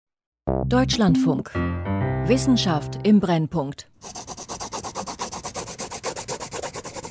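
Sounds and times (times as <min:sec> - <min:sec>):
speech: 0:00.7 - 0:04.3
pencil scratching back and forth across paper: 0:04.0 - 0:07.0.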